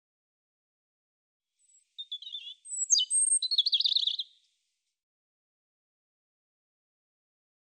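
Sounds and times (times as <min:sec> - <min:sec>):
European robin song: 0:01.6 - 0:04.5.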